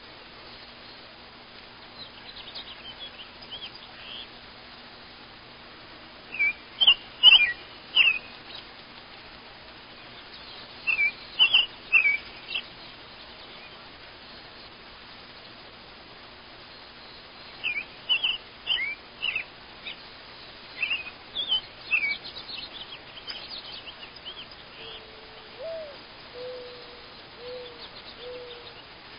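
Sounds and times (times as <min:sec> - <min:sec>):
morning birds singing: 0:01.8 - 0:04.4, 0:06.3 - 0:08.7, 0:10.0 - 0:13.9, 0:16.7 - 0:29.1.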